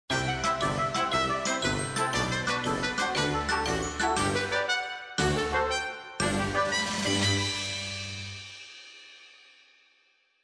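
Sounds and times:
winning jingle: 0:00.1 - 0:08.4.

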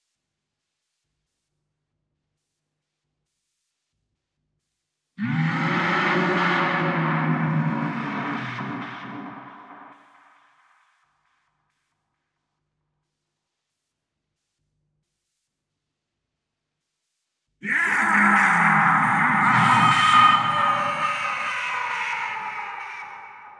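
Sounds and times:
ice monster ambience: 0:05.2 - 0:09.8, 0:17.6 - 0:23.5.

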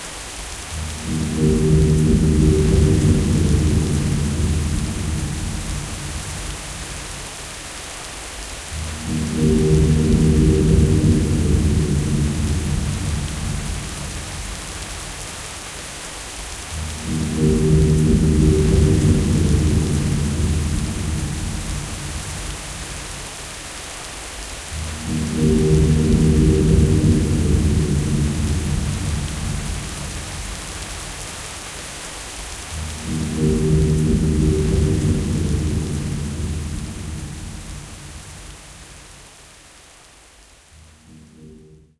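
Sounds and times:
music loop: 0:00.8 - 0:07.2, 0:08.7 - 0:15.2, 0:16.7 - 0:23.3, 0:24.8 - 0:31.2, 0:32.7 - 0:38.6, 0:40.8 - 0:41.9.

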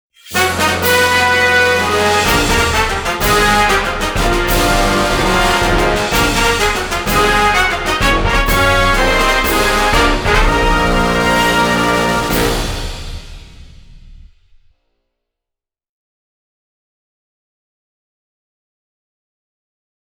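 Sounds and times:
fanfare: 0:00.2 - 0:13.7.

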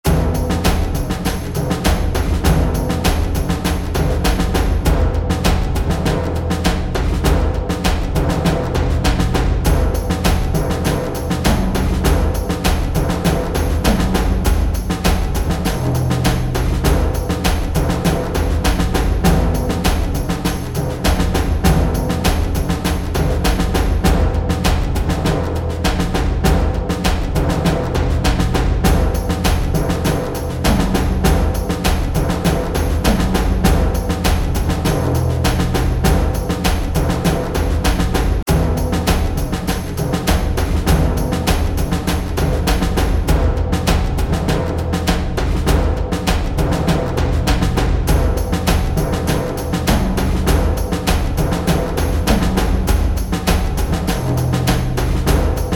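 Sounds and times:
train percussion mix: 0:00.0 - 0:55.7.

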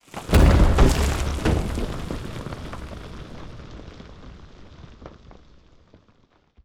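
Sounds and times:
wall breaking: 0:00.1 - 0:03.9.

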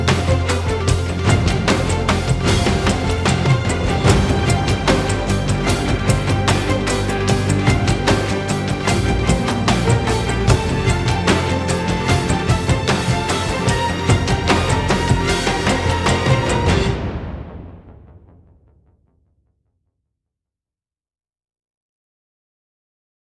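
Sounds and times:
pre-race percussion game music: 0:00.0 - 0:18.4.

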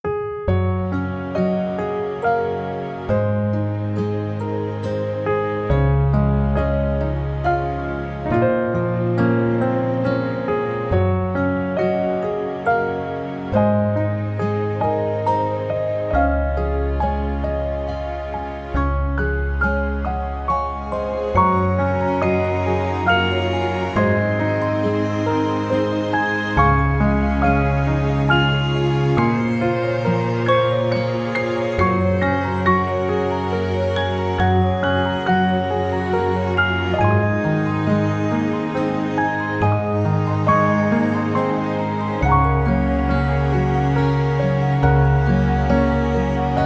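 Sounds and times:
romantic music: 0:00.0 - 0:46.6.

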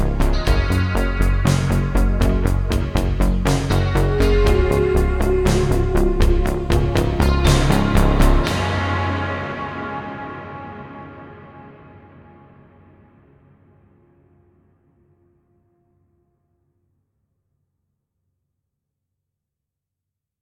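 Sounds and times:
120 bpm video game music: 0:00.0 - 0:11.3.

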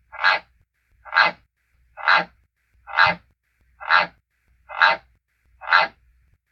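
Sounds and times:
croaking: 0:00.1 - 0:01.4, 0:02.0 - 0:02.3, 0:02.9 - 0:03.2, 0:03.8 - 0:06.0.

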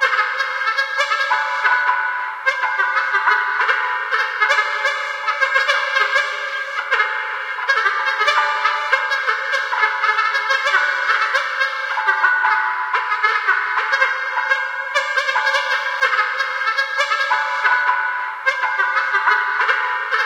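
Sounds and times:
music loop: 0:00.0 - 0:20.2.

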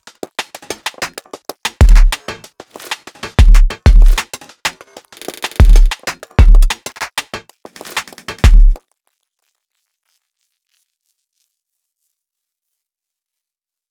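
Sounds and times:
drum music: 0:00.0 - 0:08.8.

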